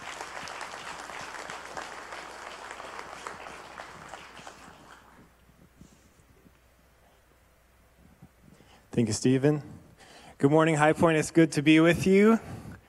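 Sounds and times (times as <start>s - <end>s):
audience applause: 0.0s - 5.3s
speech: 9.0s - 9.8s, 10.4s - 12.5s.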